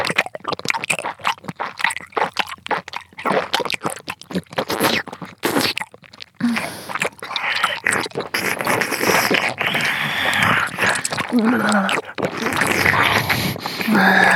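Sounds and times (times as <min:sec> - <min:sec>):
chewing: 0:00.0 - 0:14.3
person spitting: 0:04.5 - 0:05.8, 0:06.4 - 0:14.3.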